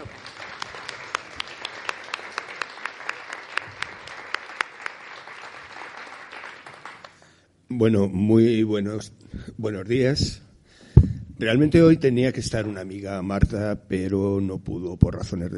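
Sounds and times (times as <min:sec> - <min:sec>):
audience applauding: 0:00.0 - 0:07.2
speech: 0:07.7 - 0:10.4, 0:11.4 - 0:15.5.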